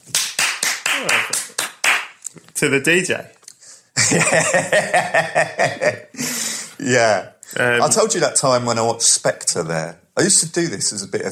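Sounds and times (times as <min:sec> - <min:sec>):
person clapping imitating an audience applauding: 0:00.0 - 0:02.2
speech: 0:01.0 - 0:01.6, 0:02.3 - 0:03.4, 0:04.1 - 0:11.2
laughter: 0:04.0 - 0:06.4.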